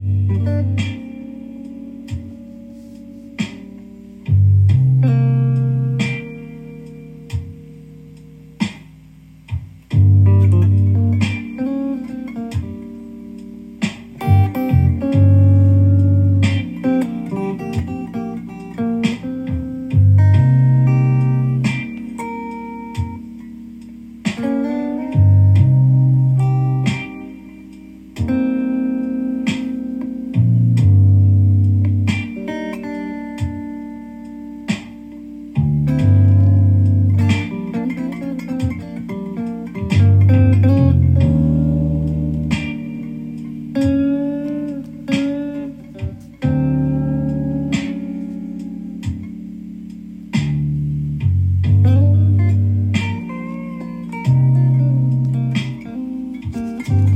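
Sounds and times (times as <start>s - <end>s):
blues in G minor: 0.0s - 57.1s.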